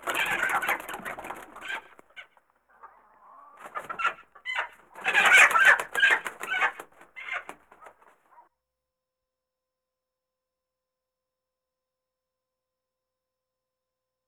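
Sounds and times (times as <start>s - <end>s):
chickens clucking and squawking: 0.0s - 8.4s.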